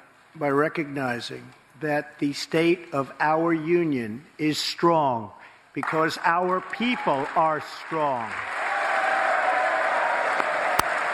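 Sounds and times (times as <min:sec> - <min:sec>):
speech: 0:00.4 - 0:08.6
applause during a State of the Union address: 0:05.8 - 0:11.1.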